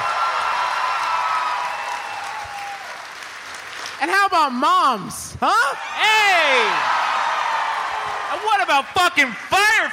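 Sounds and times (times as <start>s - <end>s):
audience clapping: 0.0s - 4.1s, 6.6s - 9.9s
speech: 4.0s - 7.0s, 8.3s - 9.9s.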